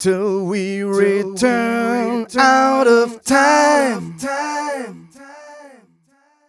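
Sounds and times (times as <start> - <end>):
vocals: 0.0 - 6.3.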